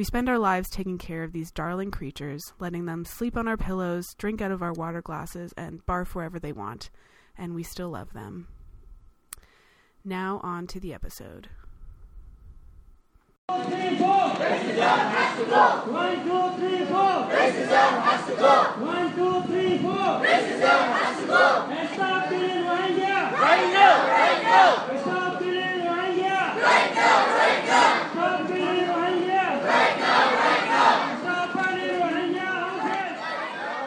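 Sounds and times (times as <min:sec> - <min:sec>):
speech: 0:00.0 - 0:08.6, 0:10.0 - 0:11.6, 0:13.5 - 0:25.5
protest crowd chanting at a demonstration at Kitchener City Hall: 0:13.5 - 0:33.8.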